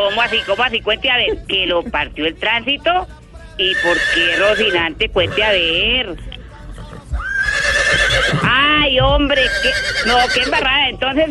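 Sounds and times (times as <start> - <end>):
horse neighing: 0.0 - 0.8, 3.6 - 5.8, 6.9 - 8.7, 9.3 - 10.7
speech: 0.0 - 6.3, 7.9 - 11.2.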